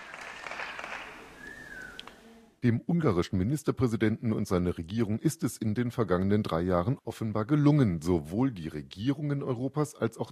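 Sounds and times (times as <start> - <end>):
applause at the end of a speech by Viktor Orbán: 0.0 - 2.2
sustained high whistle from the audience: 0.2 - 2.1
speech: 2.6 - 10.3.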